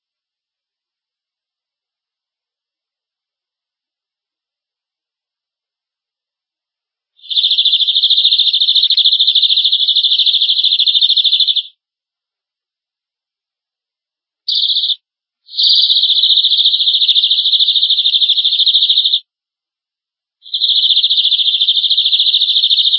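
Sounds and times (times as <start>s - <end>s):
domestic canary trilling: 7.2s - 11.8s, 14.5s - 19.2s, 20.4s - 22.9s.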